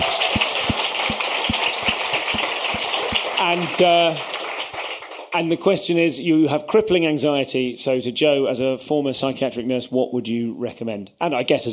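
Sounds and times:
audience applause: 0.0 - 5.3
speech: 3.5 - 4.3, 5.3 - 11.7.

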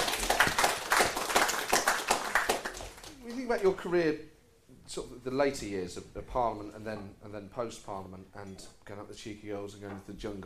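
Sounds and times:
round of applause: 0.0 - 3.7
speech: 3.5 - 4.3, 4.9 - 10.4.

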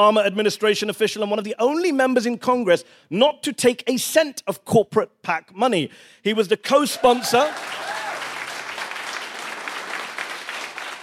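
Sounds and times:
speech: 0.0 - 7.9
audience applause: 7.0 - 11.0.

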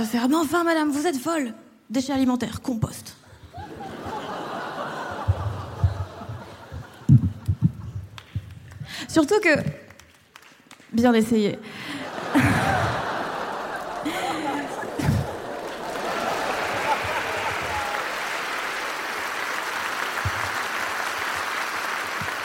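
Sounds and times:
speech: 0.0 - 3.2, 9.1 - 9.8, 10.9 - 12.7
laughter: 3.5 - 7.6, 11.9 - 19.3
thin scattered audience applause: 9.9 - 10.9, 12.5 - 22.4.

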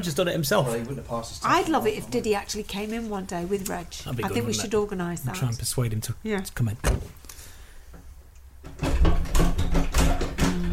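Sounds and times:
speech: 0.0 - 7.2
door being opened with struggle, rattling and clunking: 8.7 - 10.7.

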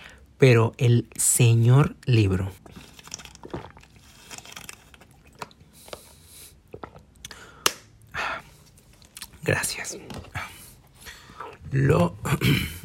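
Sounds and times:
speech: 0.4 - 3.6, 9.5 - 10.3, 11.7 - 12.8
plastic bottle crinkling and clicking: 2.6 - 6.0
person swallowing water: 6.6 - 7.4.

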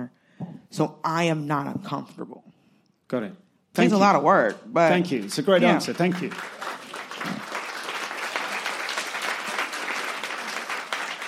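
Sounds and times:
speech: 0.0 - 2.4, 3.1 - 6.8
audience applause: 5.0 - 11.2.

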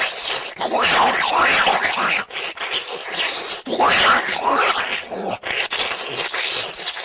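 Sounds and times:
person swallowing a water-soaked bun with wet squelching gulps: 0.0 - 7.0.

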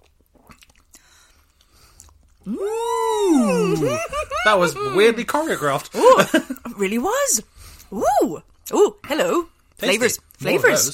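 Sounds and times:
chewing while tasting a jackrabbit Christmas dish: 0.0 - 2.9
speech: 2.5 - 2.9, 3.8 - 10.9
person exclaiming: 2.5 - 5.2
laughter: 3.1 - 6.6.

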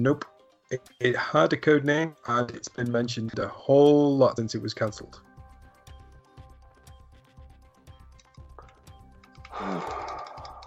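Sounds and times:
speech: 0.0 - 5.2
typing on keyboard with a pen in mouth: 8.1 - 10.6.

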